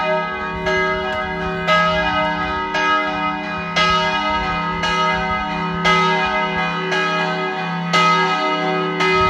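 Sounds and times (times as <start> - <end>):
Slovenian church bells ringing: 0.0 - 9.2.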